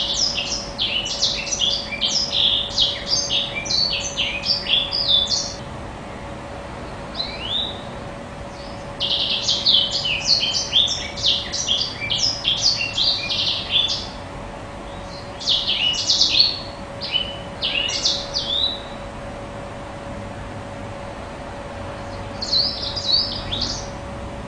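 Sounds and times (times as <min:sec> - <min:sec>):
blackthroat bird singing vigorously: 0:00.0 - 0:05.6, 0:06.9 - 0:14.2, 0:14.8 - 0:19.1, 0:21.9 - 0:24.0.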